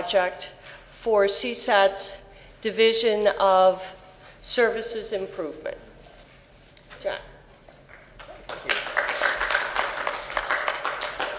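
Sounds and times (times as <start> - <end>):
speech: 0.1 - 5.9, 7.0 - 7.3
audience applause: 8.2 - 11.3.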